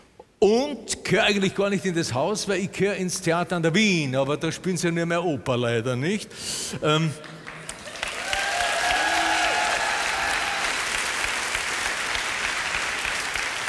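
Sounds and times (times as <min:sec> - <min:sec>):
speech: 0:00.4 - 0:07.4
audience applause: 0:07.3 - 0:13.6.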